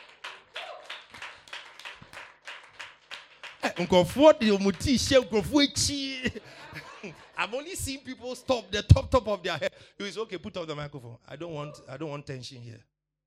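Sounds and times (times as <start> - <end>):
audience clapping: 0.0 - 8.0
laughter: 3.6 - 9.8
speech: 3.7 - 12.9.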